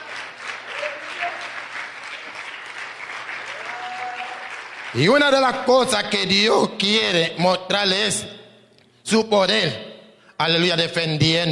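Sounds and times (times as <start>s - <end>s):
audience applause: 0.0s - 5.3s
speech: 4.9s - 8.4s, 9.1s - 9.8s, 10.4s - 11.5s.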